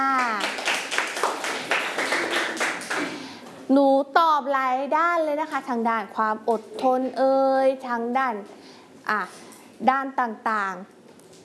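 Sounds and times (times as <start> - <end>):
children clapping in unison for a classmate: 0.1 - 3.2
speech: 3.7 - 11.0.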